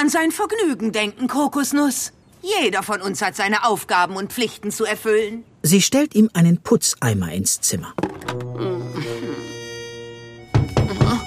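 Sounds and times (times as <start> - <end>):
speech: 0.0 - 9.4
knocking on a door: 10.5 - 11.2.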